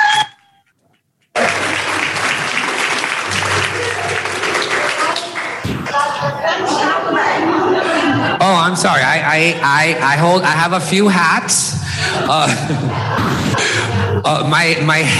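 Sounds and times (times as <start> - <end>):
crowd applause: 1.3 - 8.4, 12.0 - 14.2
laughter: 1.4 - 15.1
murmuring voices: 1.4 - 15.1
speech: 8.7 - 13.4, 14.2 - 15.1.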